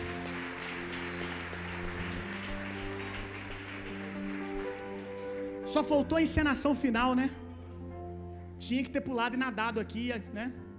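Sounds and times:
crowd clapping: 0.0 - 5.9
speech: 5.7 - 7.4, 8.7 - 10.7.

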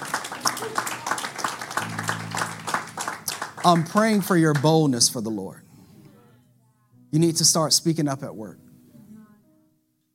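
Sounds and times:
audience clapping: 0.0 - 5.4
speech: 3.6 - 5.7, 7.1 - 8.6.

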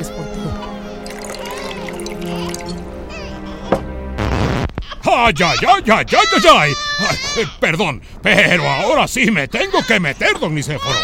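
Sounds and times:
music: 0.0 - 4.6
liquor pouring: 1.0 - 3.0
speech: 5.2 - 11.0.

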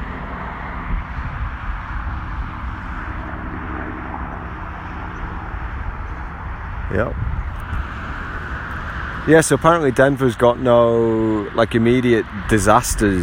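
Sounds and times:
World War II replica propeller plane droning overhead: 0.0 - 13.2
speech: 6.9 - 7.3, 9.2 - 13.2.

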